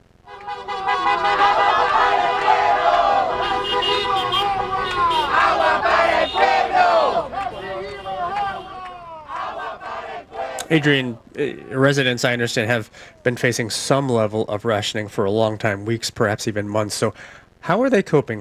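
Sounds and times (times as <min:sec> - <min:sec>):
cars honking in support of a protest: 0:00.2 - 0:12.0
protesters shouting: 0:00.3 - 0:11.9
speech: 0:10.7 - 0:18.3.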